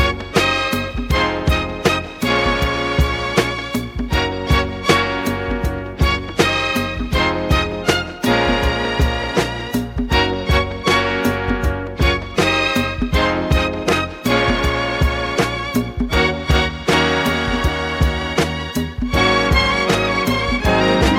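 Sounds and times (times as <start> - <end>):
music in B flat minor at 157 bpm: 0.0 - 21.1.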